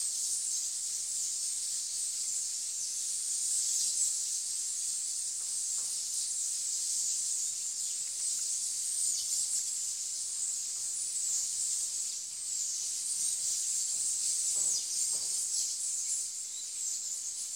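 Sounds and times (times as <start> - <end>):
birds feeding: 0.1 - 17.5.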